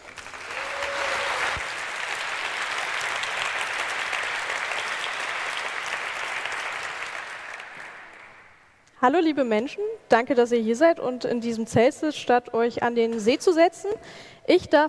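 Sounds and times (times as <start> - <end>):
audience applause: 0.0 - 8.7
speech: 9.0 - 14.8.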